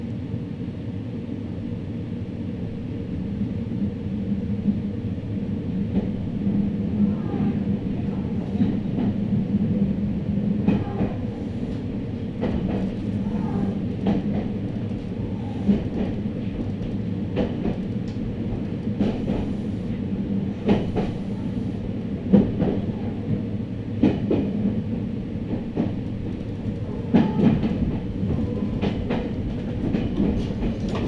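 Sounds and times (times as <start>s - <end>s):
Meitetsu train rumble on the Inuyama and Hiromi lines: 0.0s - 31.0s
Meitetsu train wheel clacks and rattling knocks: 10.6s - 23.0s, 24.0s - 31.0s.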